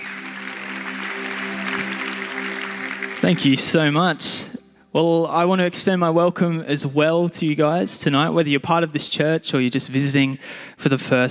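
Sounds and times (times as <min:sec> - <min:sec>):
audience applause at an evening church service welcoming a guest speaker: 0:00.0 - 0:04.5
speech: 0:03.3 - 0:11.2.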